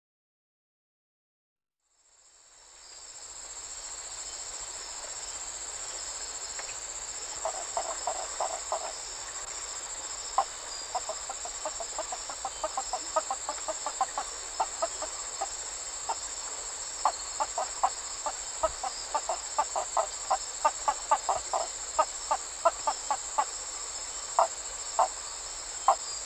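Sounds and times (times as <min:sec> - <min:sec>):
shrill insect buzz: 0:02.0 - 0:26.2
map tree frog clucking calls: 0:06.6 - 0:09.5, 0:10.2 - 0:16.4, 0:17.0 - 0:26.1.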